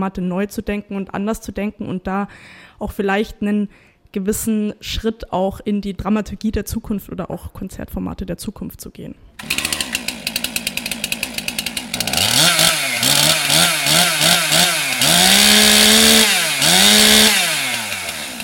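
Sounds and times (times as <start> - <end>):
speech: 0.0 - 9.7
chainsaw carving a Mozart statue from a wooden log in Würzburg: 9.4 - 18.4.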